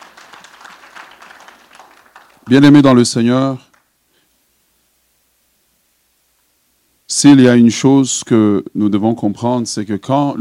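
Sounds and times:
congregation at a French-language church service clapping: 0.0 - 4.0
speech: 2.5 - 3.7, 7.2 - 10.3.

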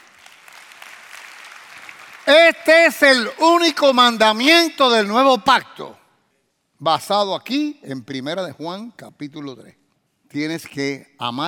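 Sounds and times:
audience applause: 0.0 - 2.4
speech: 2.3 - 6.0, 6.8 - 11.4.

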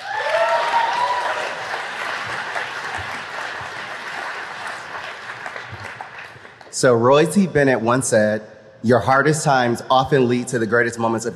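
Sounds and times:
person cheering: 0.0 - 1.6
audience applause: 0.0 - 6.8
speech: 6.8 - 11.3.

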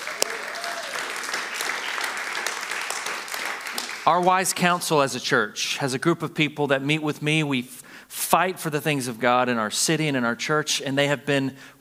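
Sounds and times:
audience applauding: 0.0 - 4.7
speech: 4.0 - 11.7.

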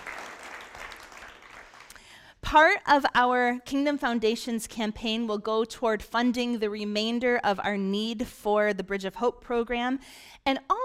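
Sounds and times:
crowd applauding: 0.0 - 2.0
speech: 2.5 - 10.8.

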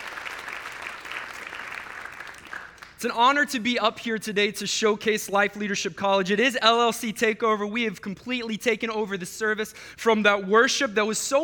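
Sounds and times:
audience applause at a church service: 0.0 - 3.0
speech: 3.0 - 11.4.

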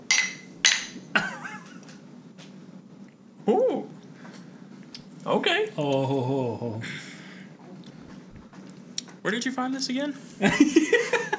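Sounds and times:
glasses clinking in a toast: 0.0 - 1.2
laughter: 1.2 - 1.9, 10.4 - 11.3
speech: 3.4 - 3.7, 5.3 - 7.0, 9.2 - 11.3.

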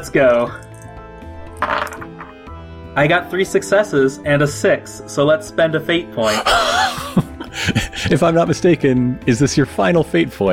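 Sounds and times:
speech: 0.0 - 0.7, 3.0 - 10.5
dice being rolled: 1.5 - 2.3
laughter: 6.2 - 8.4.

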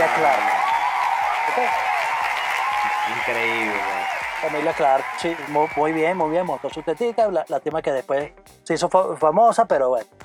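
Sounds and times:
crowd giving a standing ovation: 0.0 - 7.3
speech: 3.3 - 10.2.

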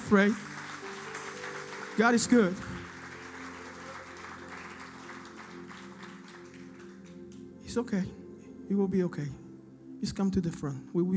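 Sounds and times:
audience clapping hands: 0.0 - 7.6
speech: 0.1 - 0.5, 2.0 - 2.8, 7.7 - 9.4, 10.0 - 11.1.

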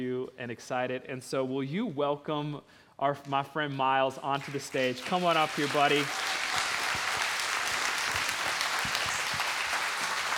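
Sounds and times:
speech: 0.0 - 7.0
church congregation giving a standing ovation: 4.4 - 10.3.

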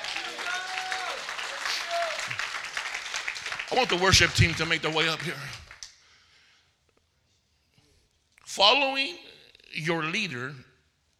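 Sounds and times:
audience applause: 0.0 - 5.9
speech: 3.7 - 5.6, 8.6 - 10.7.

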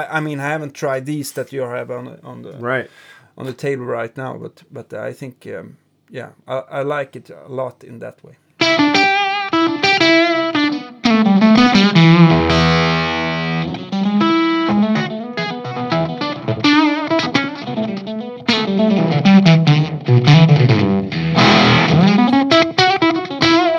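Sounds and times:
speech: 0.0 - 8.4
electric guitar through fuzz and octave effects: 8.6 - 23.7.

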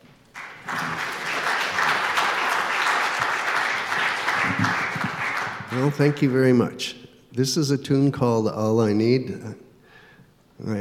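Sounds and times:
audience applause welcoming a guest musician at a House of Mercy service: 0.3 - 6.4
speech: 5.7 - 9.6, 10.6 - 10.7.

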